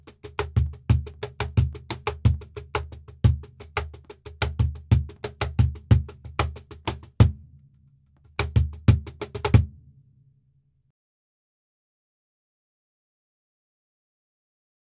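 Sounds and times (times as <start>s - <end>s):
flamenco cajon playing: 0.0s - 7.4s, 8.3s - 9.8s.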